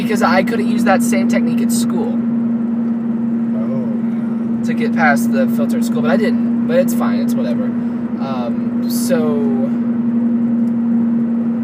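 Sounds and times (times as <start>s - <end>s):
droning hum inside a car driving along an empty road: 0.0s - 11.6s
speech: 0.1s - 2.3s, 4.6s - 9.8s.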